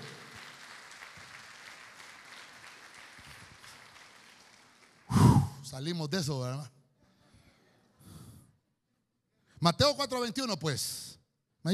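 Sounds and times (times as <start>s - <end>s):
audience applause: 0.0s - 5.2s
speech: 5.7s - 6.8s, 9.6s - 11.7s.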